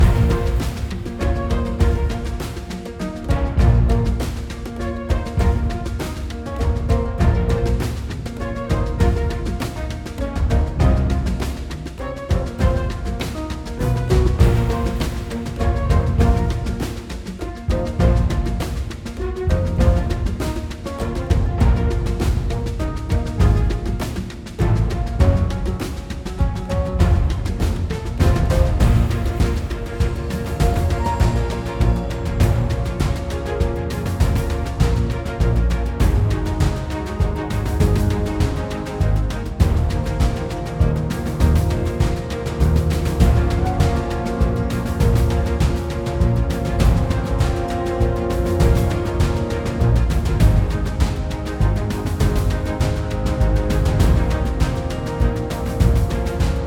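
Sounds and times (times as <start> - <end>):
intense music: 0.0 - 56.6.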